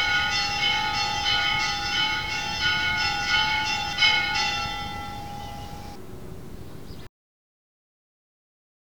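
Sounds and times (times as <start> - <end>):
bells ringing repique and repiquete peals: 0.0 - 6.0.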